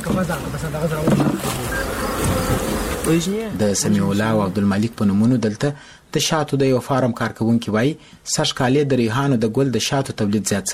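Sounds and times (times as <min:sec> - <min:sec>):
honey bees buzzing at a beekeeping farm in Dand district, Kandahar: 0:00.0 - 0:05.2
speech: 0:00.1 - 0:10.7.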